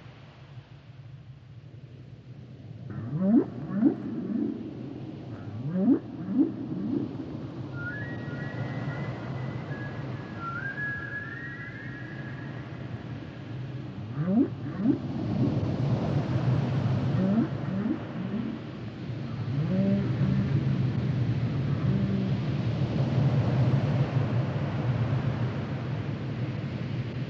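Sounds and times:
low background rumble: 0.0s - 10.4s, 11.8s - 27.2s
whale song: 2.9s - 15.2s, 17.0s - 22.5s.

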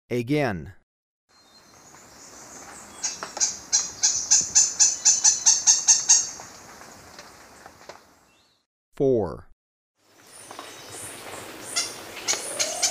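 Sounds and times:
speech: 0.1s - 0.8s, 9.0s - 9.5s
Lineated Foliage-gleaner song of dry harsh notes: 1.3s - 6.5s, 8.2s - 8.6s, 10.1s - 12.8s.

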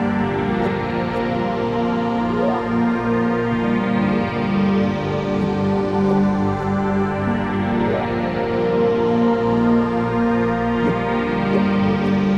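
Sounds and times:
synth pad: 0.0s - 12.3s.

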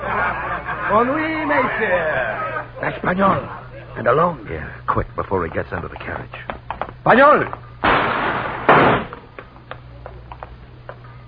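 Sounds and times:
laughter: 0.0s - 4.0s
speech: 0.9s - 7.6s
gunshot in an alley in a radio drama: 7.8s - 9.2s.

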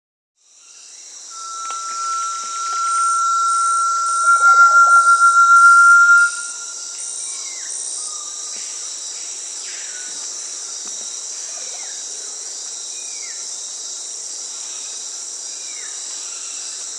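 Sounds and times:
Brazilian tinamou long steady whistle in South America: 1.4s - 6.9s.

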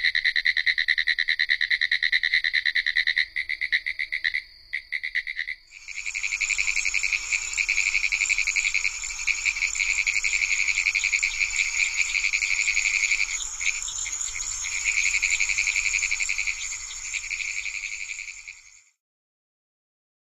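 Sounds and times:
pine woods treefrog in North America: 0.0s - 19.0s.

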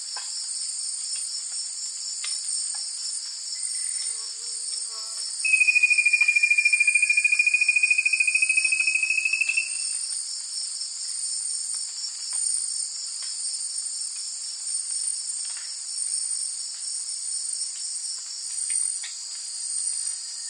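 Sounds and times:
Rufous-capped Antthrush calling in South America's Eastern Lowlands: 5.4s - 10.0s.

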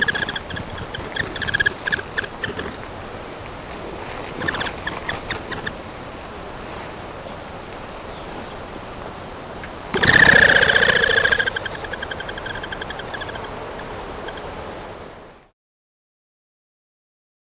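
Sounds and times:
Black-winged ground dove calling: 0.0s - 6.4s, 9.4s - 14.7s.

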